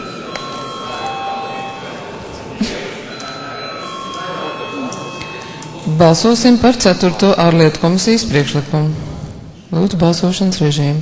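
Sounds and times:
parliament voting call bell ringing: 0:00.0 - 0:07.0
faint murmur of voices: 0:00.0 - 0:11.0
speech: 0:06.0 - 0:09.0, 0:09.7 - 0:11.0.

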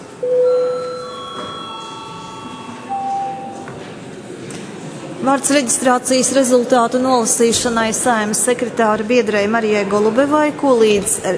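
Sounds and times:
parliament session bell ringing: 0:00.2 - 0:04.0
speech: 0:05.2 - 0:11.3.

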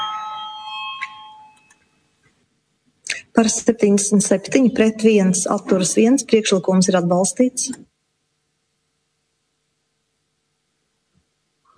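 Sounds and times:
electronic bell ringing in a parliament chamber before a vote: 0:00.0 - 0:01.9
speech: 0:03.4 - 0:07.9.

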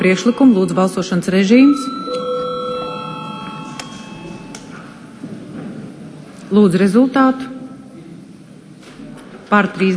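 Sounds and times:
speech: 0:00.0 - 0:02.2, 0:06.5 - 0:07.5, 0:09.5 - 0:09.9
parliament chamber bell ringing: 0:00.0 - 0:05.1.

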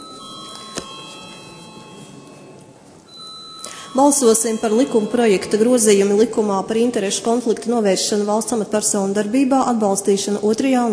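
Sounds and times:
parliament voting bell ringing: 0:00.0 - 0:06.9
speech: 0:03.9 - 0:10.9.

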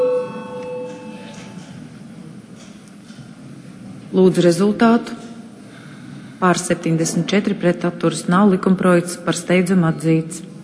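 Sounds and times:
parliament voting bell: 0:00.0 - 0:01.6
speech: 0:04.2 - 0:05.2, 0:06.4 - 0:10.5.

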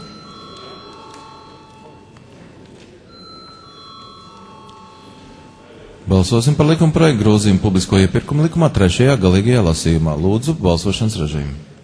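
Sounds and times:
parliament voting bell ringing: 0:00.0 - 0:02.2, 0:03.1 - 0:06.5
murmur of voices: 0:00.0 - 0:11.8
speech: 0:06.1 - 0:11.7.

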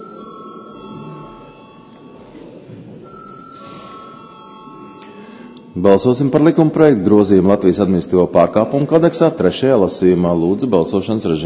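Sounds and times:
electric bell rung in a parliament chamber to call a vote: 0:00.0 - 0:06.8
low murmur of room noise: 0:00.0 - 0:11.4
speech: 0:05.8 - 0:11.4.

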